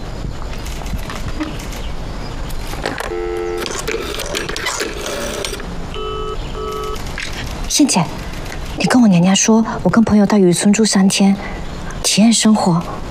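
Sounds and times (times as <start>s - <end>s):
telephone keypad tones: 2.9s - 7.1s
speech: 7.8s - 8.2s, 8.8s - 13.0s.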